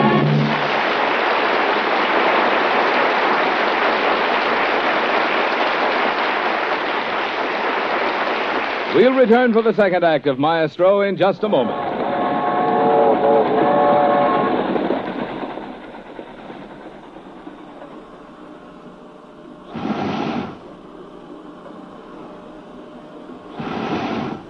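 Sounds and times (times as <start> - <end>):
moving railroad car rumbling: 0.0 - 8.4, 11.3 - 19.9
speech: 9.0 - 12.2
iron lung rhythmically pumping inside railroad car: 19.7 - 20.8, 23.5 - 24.4.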